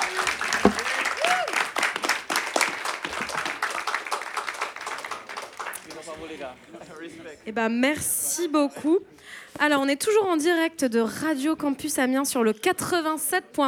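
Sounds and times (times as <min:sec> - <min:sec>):
audience applause: 0:00.0 - 0:06.5
speech: 0:07.1 - 0:13.6.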